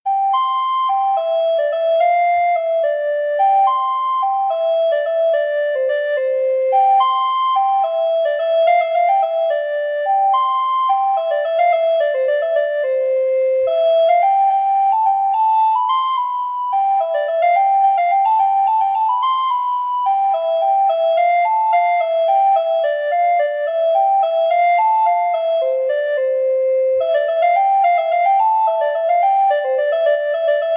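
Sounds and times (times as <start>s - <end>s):
recorder melody: 0.1s - 30.7s.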